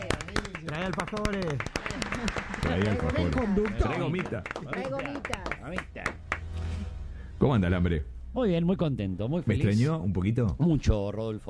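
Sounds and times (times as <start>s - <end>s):
audience applause: 0.0s - 6.6s
speech: 0.7s - 6.2s, 7.4s - 11.4s.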